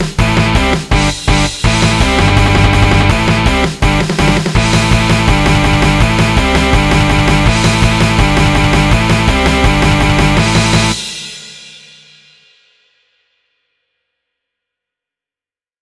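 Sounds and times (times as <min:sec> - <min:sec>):
MIDI music: 0:00.0 - 0:11.0.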